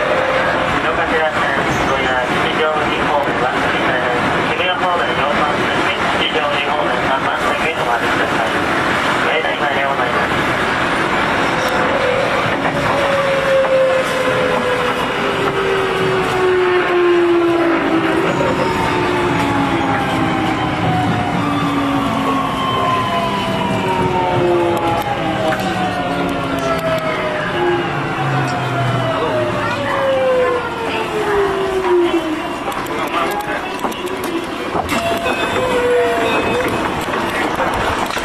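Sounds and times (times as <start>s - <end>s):
Keio 8000 series train running between Shimo-takaido and Meidaimae: 0.0s - 38.2s.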